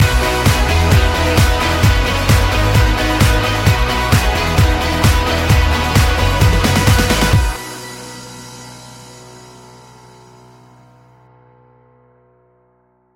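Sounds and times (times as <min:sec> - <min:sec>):
electric guitars: 0:00.0 - 0:09.4.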